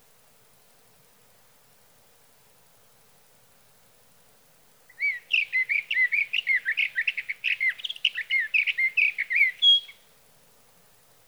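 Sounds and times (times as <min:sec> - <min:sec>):
Sage thrasher song: 0:04.9 - 0:10.0.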